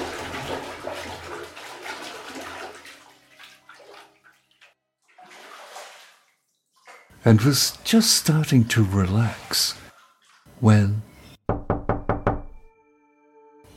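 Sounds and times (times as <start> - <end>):
warm bath water sloshing in a bathtub: 0.0 - 7.2, 8.3 - 10.5
speech: 7.2 - 9.8, 10.6 - 11.6.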